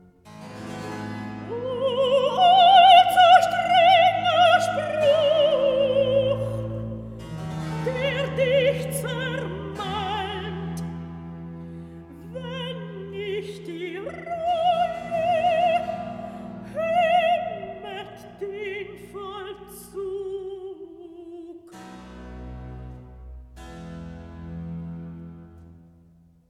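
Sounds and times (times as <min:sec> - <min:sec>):
recitative singing: 0:01.4 - 0:10.9, 0:12.1 - 0:21.8.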